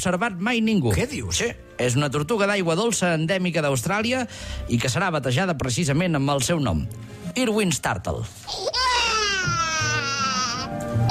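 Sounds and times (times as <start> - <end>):
speech: 0.0 - 9.0
newborn baby crying: 8.5 - 11.0.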